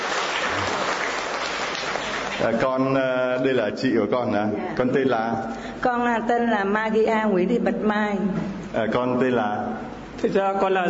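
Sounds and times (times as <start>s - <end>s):
congregation at a Catholic gathering applauding a large family: 0.0s - 3.0s
speech: 2.4s - 10.8s.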